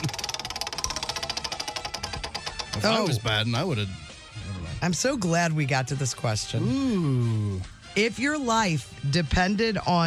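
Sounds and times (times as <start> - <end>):
question wheel spinning in a game: 0.0 - 3.3
speech: 2.8 - 4.0, 4.8 - 10.0.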